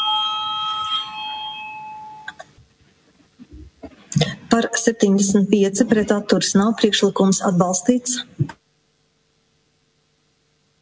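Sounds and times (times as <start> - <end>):
parliament bell calling members to a vote: 0.0 - 2.3
speech: 4.1 - 8.5.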